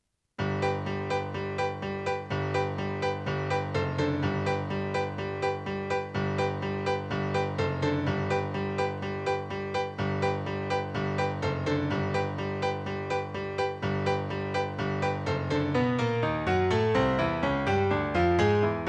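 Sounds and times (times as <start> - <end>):
piano: 0.4 - 18.8.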